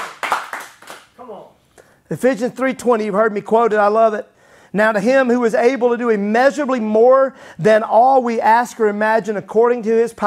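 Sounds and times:
people clapping hands: 0.0 - 1.2
speech: 1.3 - 10.2.

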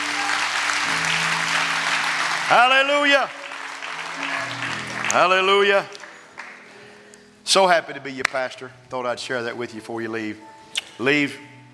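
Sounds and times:
audience clapping hands: 0.0 - 6.9
speech: 2.5 - 3.4, 4.2 - 6.0, 7.5 - 11.5.

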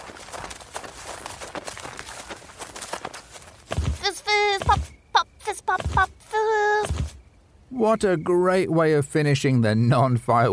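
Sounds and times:
footsteps running into a garden: 0.0 - 7.2
speech: 7.8 - 10.5.

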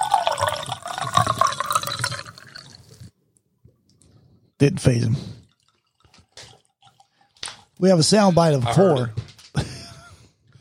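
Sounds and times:
Eagle Rare bourbon pouring into a glass: 0.0 - 3.1, 5.4 - 7.8
speech: 4.6 - 5.4, 7.8 - 9.2.

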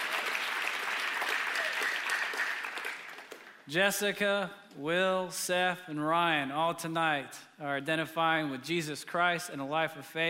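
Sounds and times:
audience applause: 0.0 - 3.6
speech: 3.7 - 10.2.

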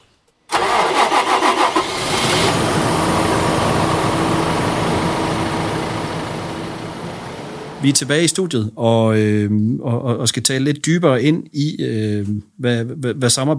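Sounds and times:
farm vehicle engine starting and idling: 0.5 - 8.0
speech: 7.8 - 13.5.

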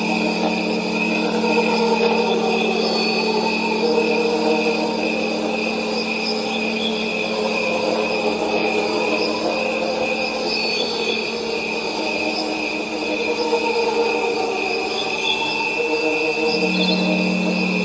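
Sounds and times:
crickets chirping: 0.0 - 17.8
tuning forks ringing: 16.4 - 17.8.

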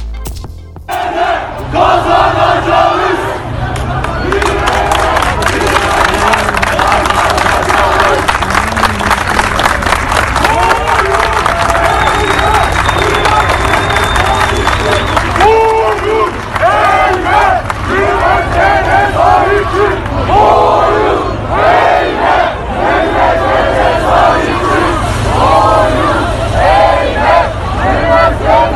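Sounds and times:
protest crowd chanting in Istanbul: 0.8 - 8.7, 16.5 - 28.7
protest crowd of young people roaring in Istanbul, Turkey: 0.9 - 28.7.

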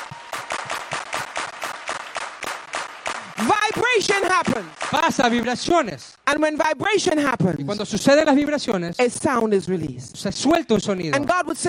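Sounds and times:
hands clapping in a church service: 0.0 - 5.7
speech: 3.7 - 11.6.

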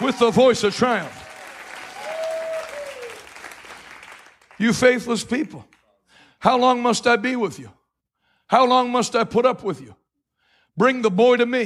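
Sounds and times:
speech: 0.0 - 1.2, 4.6 - 5.7, 6.4 - 7.8, 8.5 - 10.0, 10.8 - 11.6
crowd applauding: 0.0 - 4.9
tonal whoop or whistle: 1.2 - 3.3.

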